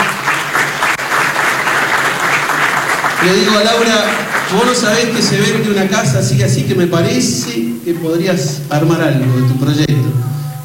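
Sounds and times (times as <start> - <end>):
audience applause: 0.0 - 7.6
speech: 3.2 - 10.3.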